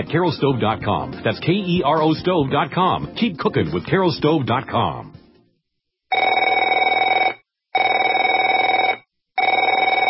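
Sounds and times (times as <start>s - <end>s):
speech: 0.0s - 5.1s
telephone ringing: 6.1s - 10.0s.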